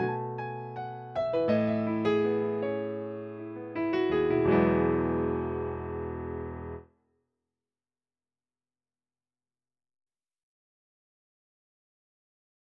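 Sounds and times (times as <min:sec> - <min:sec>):
workstation piano: 0:00.0 - 0:06.9.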